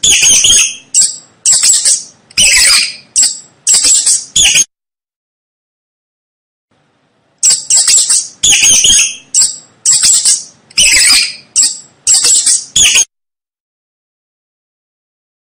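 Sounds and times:
mouse squeaking: 0.0 - 4.7, 7.4 - 13.1.

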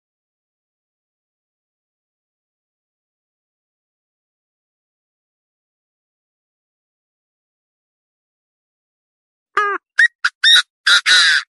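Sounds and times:
partridge calling: 9.6 - 11.4.

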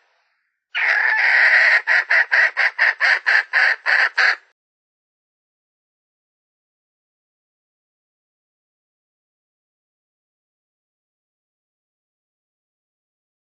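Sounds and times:
Red junglefowl hen cackling: 0.7 - 4.5.

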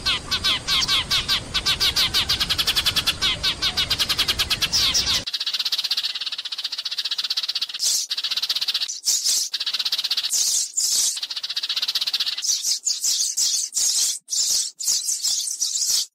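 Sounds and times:
sparrow chattering rattle: 0.1 - 16.1.

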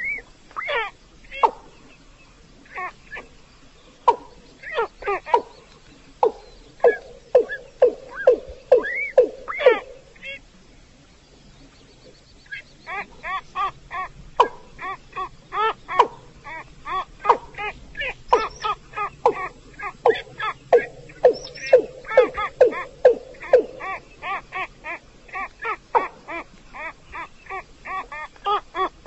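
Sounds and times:
Chinese edible frog giving pulsed notes and croaking bursts: 4.0 - 10.5, 12.4 - 29.0.

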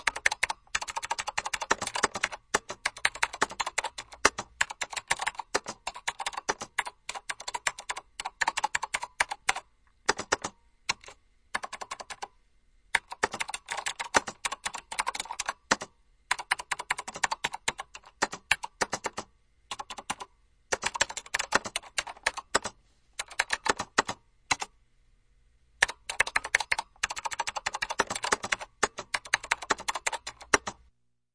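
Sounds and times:
computer keyboard in an office: 0.0 - 12.3, 12.9 - 24.7, 25.8 - 30.8.

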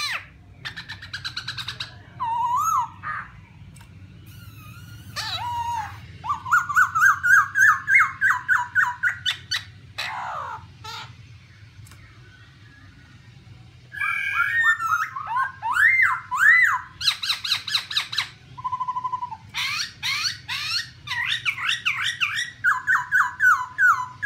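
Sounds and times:
Black-throated laughingthrush song: 0.0 - 24.2.

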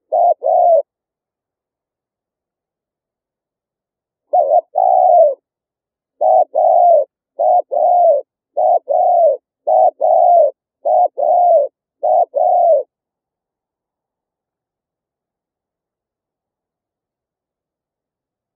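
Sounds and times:
spotted dove calling: 0.0 - 0.9, 4.3 - 5.5, 6.1 - 12.9.

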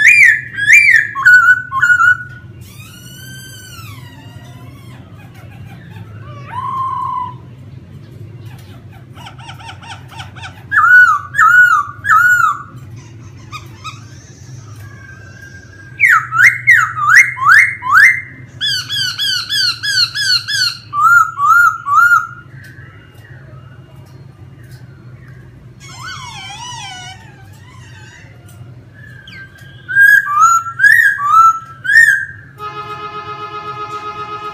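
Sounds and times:
Laughingthrush song: 0.0 - 4.2, 5.9 - 7.5, 9.4 - 12.8, 13.5 - 23.5, 28.9 - 32.5.

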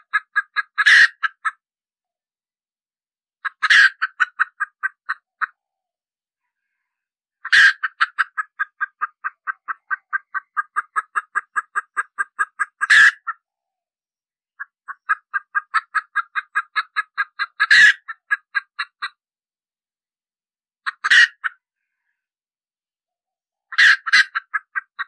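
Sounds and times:
red junglefowl hen cackling: 0.0 - 1.6, 3.4 - 5.6, 7.4 - 13.5, 14.6 - 19.2, 20.8 - 21.7, 23.7 - 25.0.

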